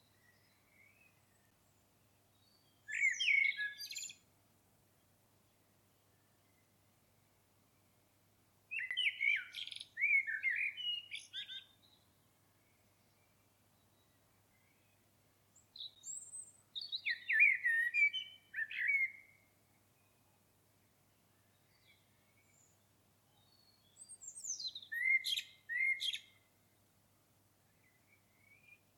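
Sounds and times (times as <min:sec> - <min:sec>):
Common blackbird fluty warbled song: 0:00.0 - 0:04.3, 0:08.7 - 0:26.9, 0:27.6 - 0:28.9.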